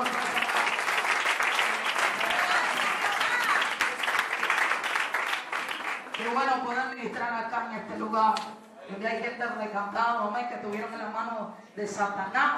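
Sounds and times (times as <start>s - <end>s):
audience applause: 0.0s - 6.3s
speech: 6.4s - 12.5s.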